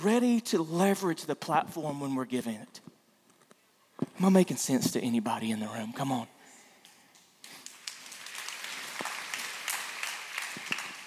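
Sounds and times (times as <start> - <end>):
speech: 0.0 - 2.9, 4.2 - 6.4
crowd clapping: 7.1 - 11.0.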